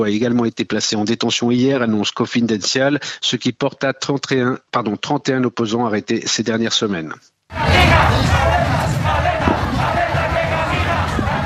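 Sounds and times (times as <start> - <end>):
speech: 0.0 - 8.6
street protesters chanting slogans: 7.5 - 11.4.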